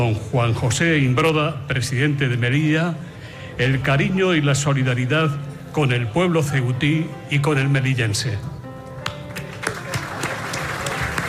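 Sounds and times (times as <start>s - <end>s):
speech: 0.0s - 8.6s
crowd applause: 9.3s - 11.2s.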